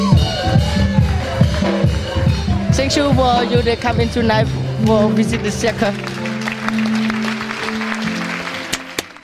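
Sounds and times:
audience applause: 0.1 - 2.5, 5.3 - 9.2
speech: 2.9 - 6.1.

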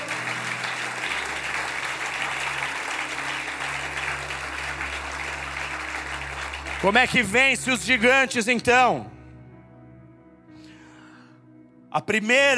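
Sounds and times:
audience applause: 0.0 - 8.1
speech: 6.8 - 9.1, 12.0 - 12.5.

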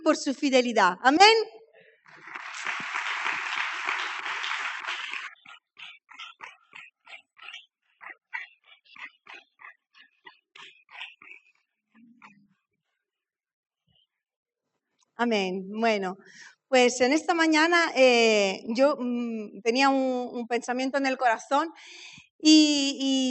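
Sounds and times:
speech: 0.1 - 1.6, 15.2 - 23.2
audience applause: 2.1 - 5.9.

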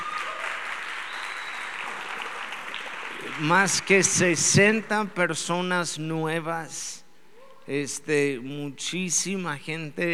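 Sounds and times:
audience applause: 0.0 - 4.3
speech: 3.4 - 7.0, 7.7 - 10.1.

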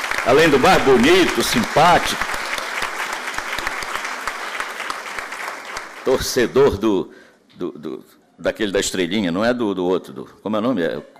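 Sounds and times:
audience applause: 0.0 - 6.8
speech: 0.2 - 2.3, 6.0 - 11.1.

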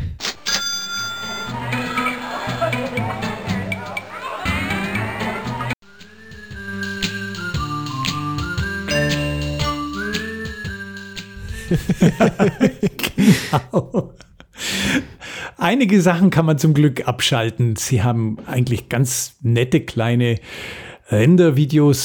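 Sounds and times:
choppy video game sound samples restarting: 0.4 - 10.9
laughter: 1.2 - 5.8, 11.5 - 14.5
speech: 11.7 - 14.2, 15.0 - 22.0.

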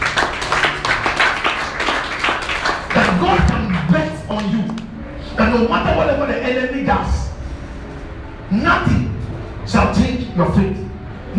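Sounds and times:
audience clapping hands: 0.0 - 4.9
speech: 5.4 - 7.2, 8.5 - 9.0, 9.7 - 10.8.

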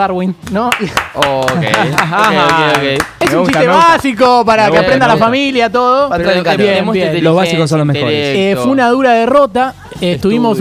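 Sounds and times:
speech: 0.0 - 10.5
clapping: 0.7 - 4.1
laughter: 1.3 - 3.6.

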